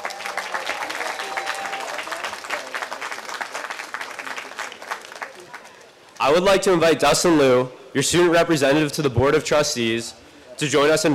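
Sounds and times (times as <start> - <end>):
audience applause: 0.0 - 5.9
speech: 6.2 - 11.1.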